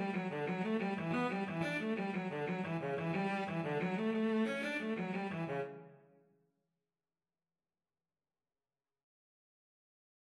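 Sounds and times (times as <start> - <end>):
cello playing a rolling jig: 0.0 - 5.8.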